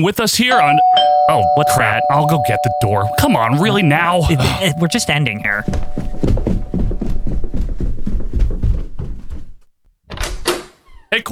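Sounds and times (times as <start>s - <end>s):
speech: 0.0s - 6.0s
heavy stomping footsteps: 4.4s - 9.7s.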